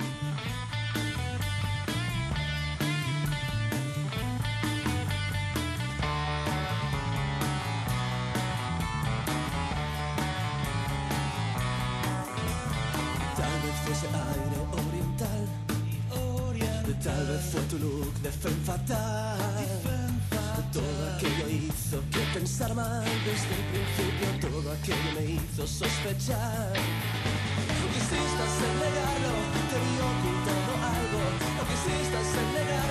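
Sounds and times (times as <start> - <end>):
band music: 0.0 - 32.9.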